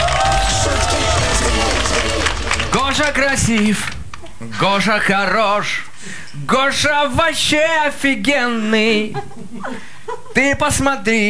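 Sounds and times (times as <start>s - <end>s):
recorded applause with crowd cheering played back in a studio: 0.0s - 4.7s
speech: 3.0s - 11.2s.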